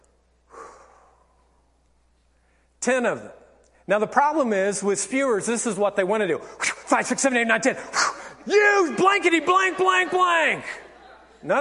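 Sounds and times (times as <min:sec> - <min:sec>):
slow deep breath as an anger-management calming technique: 0:00.5 - 0:01.6
speech: 0:02.8 - 0:10.8, 0:11.4 - 0:11.5
laughter: 0:08.4 - 0:11.5.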